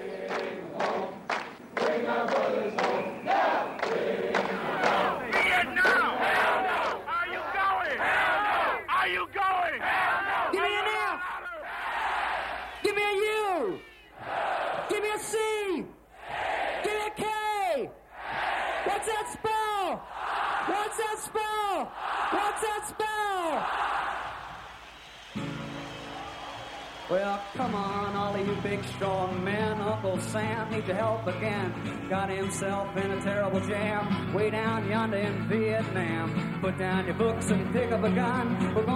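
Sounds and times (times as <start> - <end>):
huge Woodstock festival crowd chanting a spelled-out chant: 0.0 - 12.8, 14.1 - 15.2, 16.1 - 25.2
Woodstock festival crowd roar: 0.0 - 12.9, 13.5 - 15.4, 16.2 - 29.9
speech: 30.2 - 38.9.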